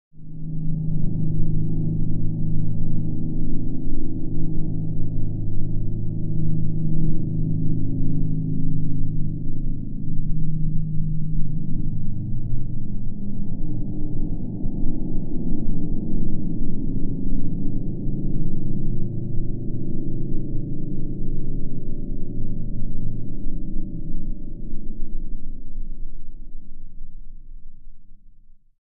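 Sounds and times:
alien womb low-end sound bed: 0.2 - 28.6.

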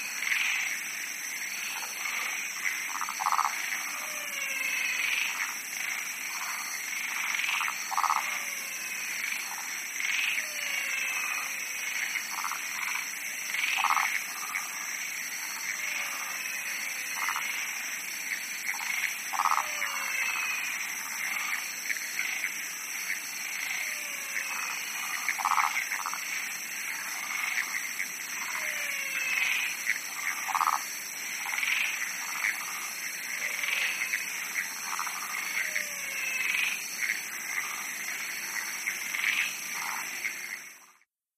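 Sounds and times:
frogs bleating in a pond: 0.0 - 41.1.

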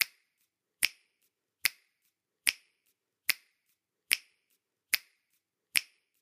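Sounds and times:
percussion finger snaps: 0.8 - 1.9, 2.5 - 5.2, 5.8 - 6.2.

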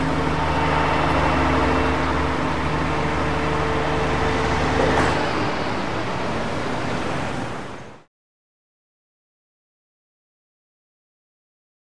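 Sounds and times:
medium garbage truck: 0.0 - 8.1.

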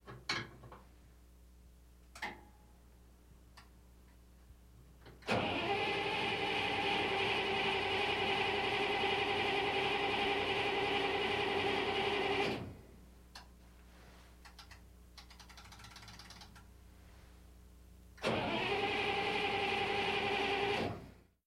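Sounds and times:
armored personnel carrier engine false start exterior: 5.2 - 12.7, 18.2 - 21.2.

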